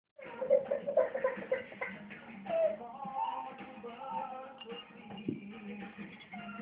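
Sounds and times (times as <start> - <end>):
hungry baby crying: 0.2 - 4.4.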